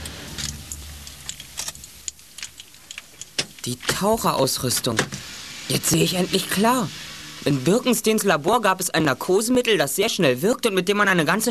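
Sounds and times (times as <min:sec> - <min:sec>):
car engine rattling: 0:00.0 - 0:03.6
speech: 0:03.6 - 0:11.4.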